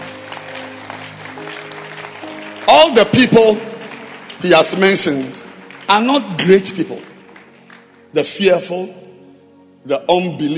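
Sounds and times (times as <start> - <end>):
audience clapping hands: 0.0 - 8.4
speech: 2.8 - 3.7, 4.4 - 7.1, 8.1 - 9.0, 9.8 - 10.5.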